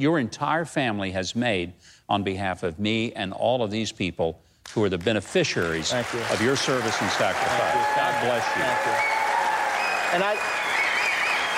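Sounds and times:
speech: 0.0 - 9.2, 10.1 - 10.6
audience applause ovation: 5.6 - 11.5.

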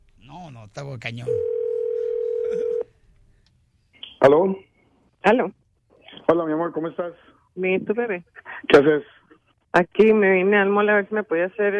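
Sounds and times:
low noise on telephone line: 0.0 - 11.7
speech: 0.4 - 1.6, 4.2 - 5.6, 6.3 - 11.7
telephone dial tone: 1.4 - 2.8.

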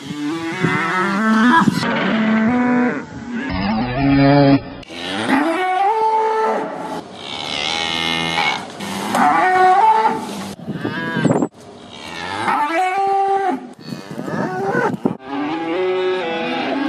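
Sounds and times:
cows mooing with auto-tuned pitch-corrected effect: 0.0 - 16.8.

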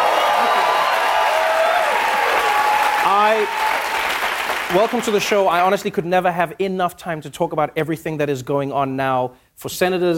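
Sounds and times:
studio audience applause welcoming a Democratic senator onto a talk show: 0.0 - 5.6
speech: 3.3 - 3.6, 4.7 - 10.1.

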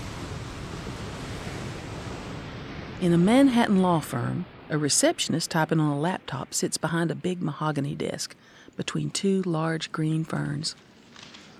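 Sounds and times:
wave breaking onto a sandy beach: 0.0 - 4.7
speech: 3.0 - 11.3.

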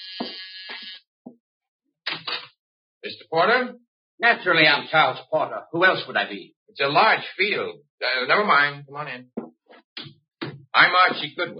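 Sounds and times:
harsh doorbell buzzing: 0.0 - 1.0
speech: 3.0 - 9.4, 10.8 - 11.5.

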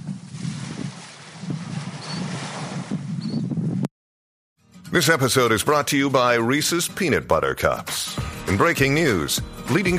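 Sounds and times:
ocean waves washing against the shore: 0.0 - 3.1
speech: 4.9 - 9.9.

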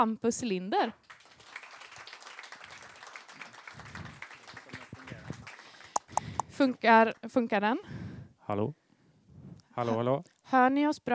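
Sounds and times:
speech: 0.0 - 1.2, 6.6 - 8.8, 9.8 - 11.1
warm audience applause: 1.0 - 6.0.

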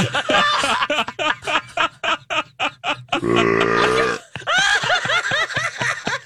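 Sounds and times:
giggling laughter: 0.0 - 6.2
burp sound effect: 3.2 - 4.2.

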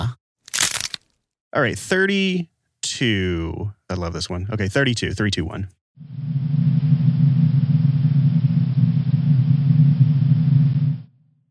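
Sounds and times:
speech: 1.5 - 6.4
white noise: 6.0 - 11.1
heavy low rumble: 6.0 - 11.4.

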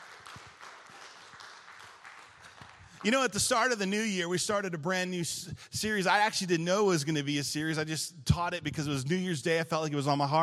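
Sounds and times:
audience applause: 0.0 - 3.8
speech: 3.0 - 10.4.

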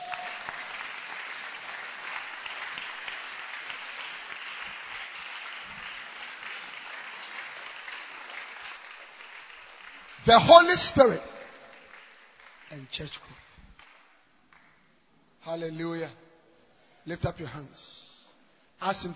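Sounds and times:
church congregation clapping during a worship service: 0.0 - 14.9
speech: 10.2 - 11.4, 12.9 - 13.4, 15.5 - 16.2, 17.0 - 18.1, 18.8 - 19.1.

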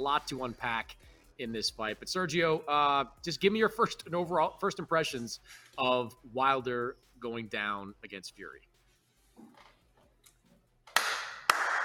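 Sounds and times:
speech: 0.0 - 8.7
applause: 11.0 - 11.8.

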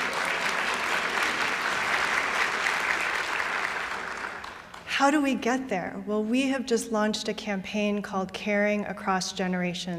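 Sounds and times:
audience applause: 0.0 - 4.8
speech: 5.0 - 9.9.

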